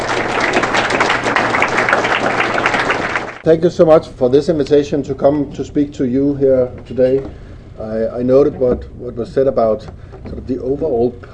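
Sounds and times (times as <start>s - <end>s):
Rotary club audience applauding an ambassador: 0.0s - 3.4s
speech: 3.4s - 11.3s.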